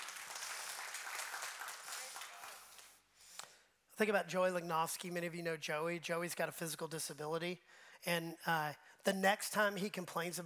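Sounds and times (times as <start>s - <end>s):
audience applauding: 0.0s - 3.0s
speech: 4.0s - 10.4s.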